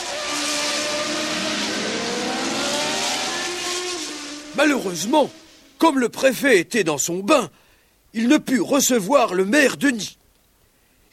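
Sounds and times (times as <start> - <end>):
Renault 4L car driving off on the road to Saint-Lô: 0.0 - 5.8
speech: 4.6 - 10.2.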